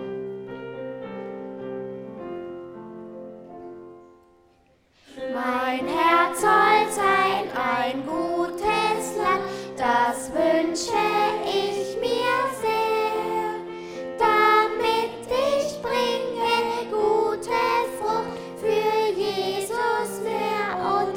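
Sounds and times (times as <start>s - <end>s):
children's song: 5.0s - 21.1s.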